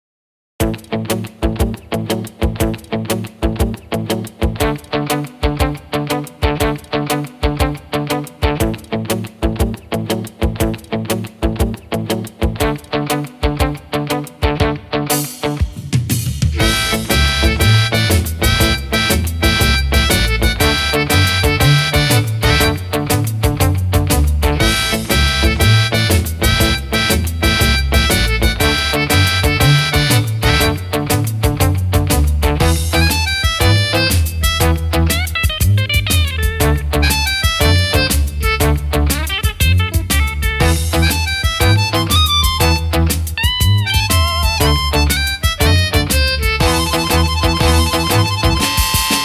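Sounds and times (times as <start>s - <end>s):
blues music: 0.6s - 49.2s.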